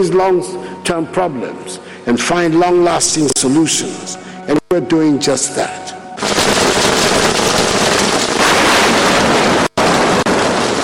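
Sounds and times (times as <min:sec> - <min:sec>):
speech: 0:00.0 - 0:05.9
steady rain: 0:06.2 - 0:10.8.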